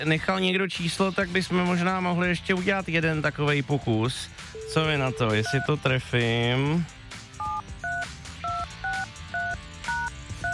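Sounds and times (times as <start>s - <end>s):
speech: 0.0s - 7.0s
telephone keypad dialing beeps: 4.6s - 5.7s, 7.4s - 10.5s.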